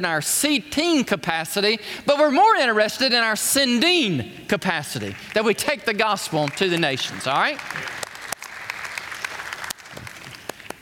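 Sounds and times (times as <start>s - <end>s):
speech: 0.0s - 8.0s
smattering of audience applause: 6.4s - 10.7s.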